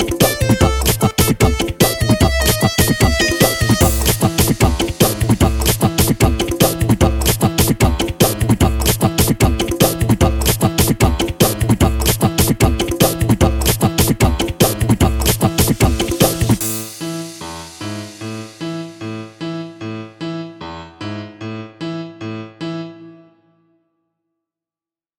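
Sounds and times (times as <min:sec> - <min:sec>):
symphonic funk music: 0:00.0 - 0:19.2.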